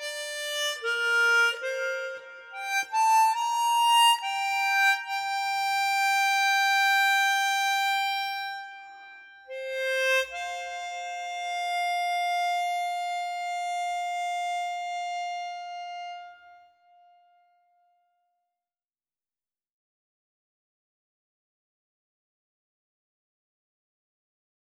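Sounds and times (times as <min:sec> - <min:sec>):
harmonica: 0:00.0 - 0:17.6.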